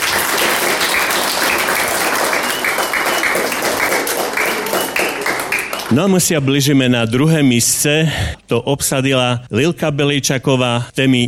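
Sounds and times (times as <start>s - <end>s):
audience applause: 0.0s - 6.3s
speech: 5.9s - 11.2s.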